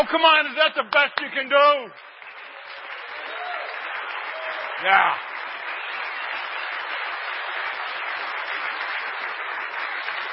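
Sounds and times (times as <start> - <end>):
speech: 0.0 - 2.1, 4.8 - 5.3
scattered applause: 0.0 - 10.3.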